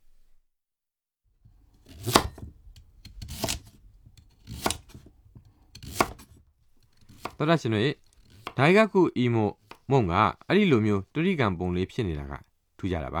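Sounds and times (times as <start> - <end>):
knife chopping eggplant into cubes: 1.8 - 8.8, 9.6 - 9.9
speech: 7.4 - 8.0, 8.6 - 13.1.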